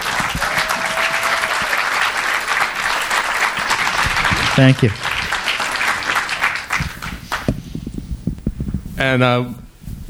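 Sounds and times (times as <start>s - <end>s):
audience applause: 0.0s - 7.5s
speech: 4.6s - 5.1s, 9.0s - 10.0s.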